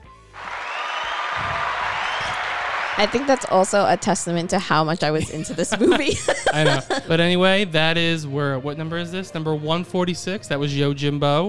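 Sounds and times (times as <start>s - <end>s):
round of applause: 0.0s - 4.6s
laughter: 3.0s - 7.8s
speech: 3.0s - 11.4s.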